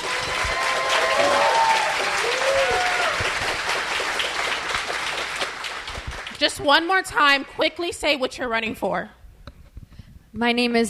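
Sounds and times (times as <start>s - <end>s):
faint cheers and whoops: 0.0s - 3.4s
audience applause: 0.0s - 6.4s
speech: 6.4s - 9.2s, 10.3s - 10.8s.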